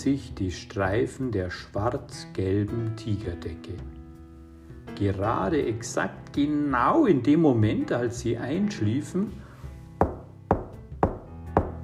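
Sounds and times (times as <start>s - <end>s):
speech: 0.0s - 4.0s, 5.0s - 9.4s
knocking on a door: 10.0s - 11.8s.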